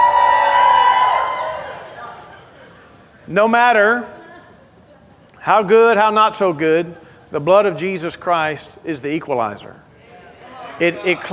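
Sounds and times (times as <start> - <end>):
audience cheering: 0.0 - 2.4
speech: 3.3 - 4.1, 5.4 - 9.9, 10.8 - 11.3.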